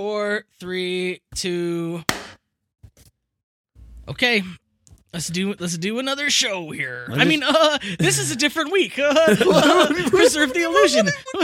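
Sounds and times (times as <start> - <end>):
speech: 0.0 - 2.4, 4.1 - 11.4
hand clap for audio sync: 2.1 - 2.4
laughter: 9.0 - 11.4.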